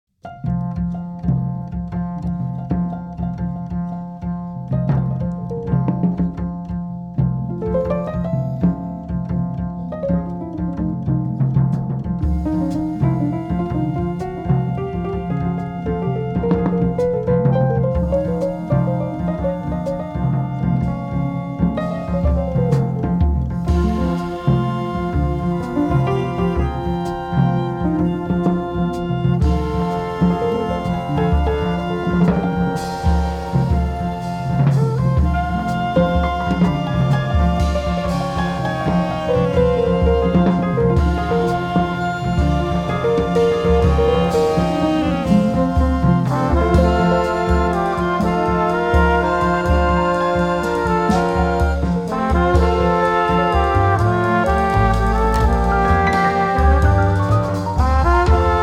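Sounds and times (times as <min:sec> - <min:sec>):
swing band playing a folk song: 0:00.2 - 0:58.6.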